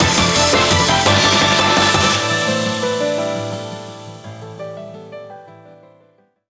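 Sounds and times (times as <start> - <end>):
background music: 0.0 - 4.5.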